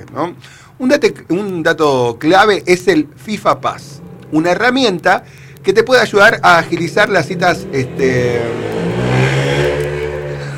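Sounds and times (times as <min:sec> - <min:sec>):
speech: 0:00.0 - 0:08.8
motorcycle engine running and revving: 0:03.2 - 0:10.5.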